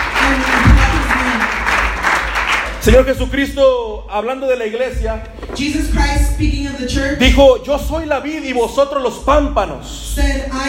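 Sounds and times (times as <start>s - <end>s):
church congregation applauding during a bilingual Spanish and English service: 0.0s - 3.2s
speech: 2.8s - 10.6s.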